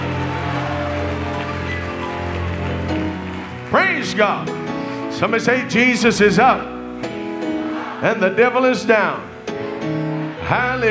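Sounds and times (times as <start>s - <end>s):
audience clapping hands: 0.0s - 5.1s
speech: 4.0s - 4.6s, 5.2s - 6.8s, 8.0s - 10.8s.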